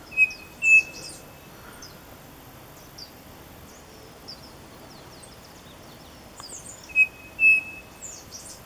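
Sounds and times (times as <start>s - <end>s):
bird thin high chirps: 0.1s - 1.9s, 6.4s - 8.5s.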